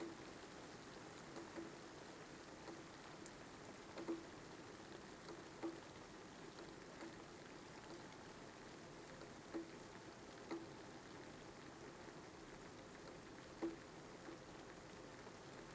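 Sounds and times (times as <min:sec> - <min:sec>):
rain heard from shelter: 0:00.0 - 0:15.7.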